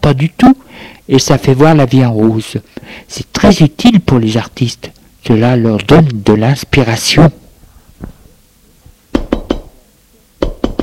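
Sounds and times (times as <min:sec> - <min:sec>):
speech: 0:00.0 - 0:07.4
knocking on a door: 0:09.2 - 0:09.7, 0:10.4 - 0:10.8.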